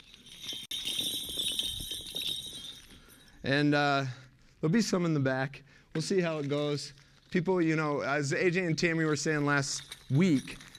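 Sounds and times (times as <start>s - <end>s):
bells being shaken: 0.0s - 3.8s, 9.0s - 10.7s
speech: 3.4s - 10.6s.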